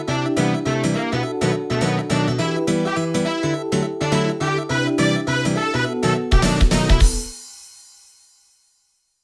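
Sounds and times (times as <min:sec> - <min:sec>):
Korg M01 synthesizer jam: 0:00.0 - 0:07.3.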